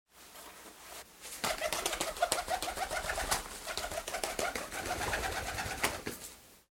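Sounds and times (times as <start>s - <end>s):
pigeon trying to take off in a dovecote: 1.3s - 6.3s.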